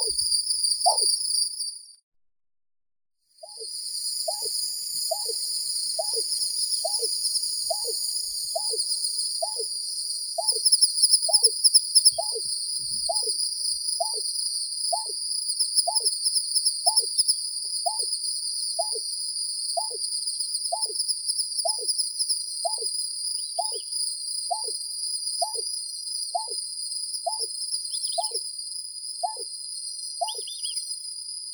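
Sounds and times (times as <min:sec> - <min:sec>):
greater painted snipe Rostratula benghalensis calling: 0:00.0 - 0:00.2, 0:00.8 - 0:01.2, 0:03.4 - 0:09.7, 0:10.4 - 0:13.4, 0:14.0 - 0:14.2, 0:14.9 - 0:15.2, 0:15.8 - 0:16.1, 0:16.8 - 0:17.1, 0:17.8 - 0:18.1, 0:18.8 - 0:19.0, 0:19.8 - 0:20.0, 0:20.7 - 0:21.0, 0:21.6 - 0:21.9, 0:22.6 - 0:23.9, 0:24.5 - 0:24.8, 0:25.4 - 0:25.7, 0:26.3 - 0:26.6, 0:27.2 - 0:28.4, 0:29.2 - 0:29.5, 0:30.2 - 0:30.8.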